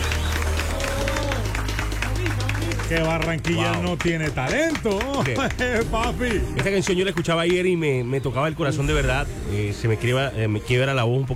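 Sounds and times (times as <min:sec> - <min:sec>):
audience applause: 0:00.0 - 0:07.7
speech: 0:02.9 - 0:11.3.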